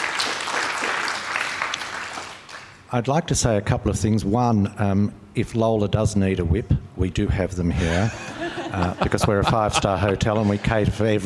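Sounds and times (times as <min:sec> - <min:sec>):
audience applause at an event in the Sofitel hotel in Melbourne: 0:00.0 - 0:02.8
speech: 0:02.9 - 0:11.2
laughter: 0:07.7 - 0:11.0.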